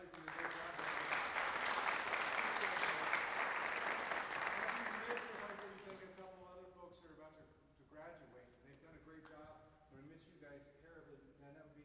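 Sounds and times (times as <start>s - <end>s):
audience applause: 0.0s - 6.2s.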